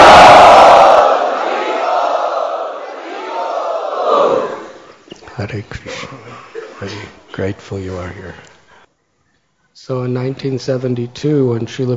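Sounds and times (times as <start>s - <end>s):
crowd loudly chanting in welcome: 0.0s - 5.1s
speech: 5.5s - 6.2s, 6.8s - 8.5s, 9.8s - 11.9s.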